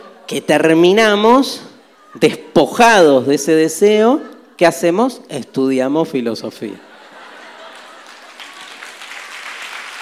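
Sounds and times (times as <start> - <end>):
speech: 0.3 - 6.9
laughter: 6.6 - 9.3
audience clapping: 7.6 - 10.0.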